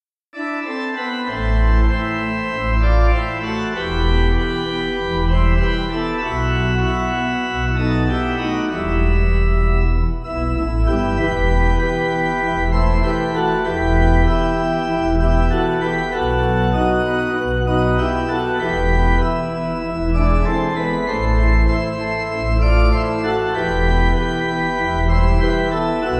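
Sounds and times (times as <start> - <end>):
pipe organ: 0.4 - 26.1.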